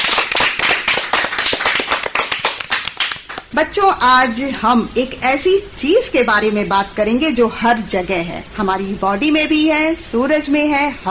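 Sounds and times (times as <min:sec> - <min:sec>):
crowd applauding: 0:00.0 - 0:03.5
speech: 0:03.5 - 0:11.0.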